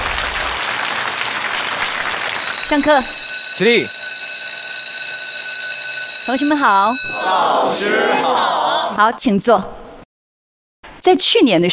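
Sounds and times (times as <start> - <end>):
audience applause welcoming a teacher to the lectern: 0.0 - 4.0
speech: 2.7 - 4.0, 6.3 - 9.8, 11.0 - 11.7
laughter: 7.2 - 9.0.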